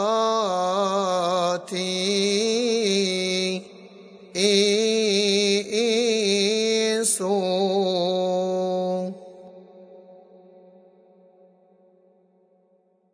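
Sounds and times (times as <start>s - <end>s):
hymn amen: 0.0s - 10.2s.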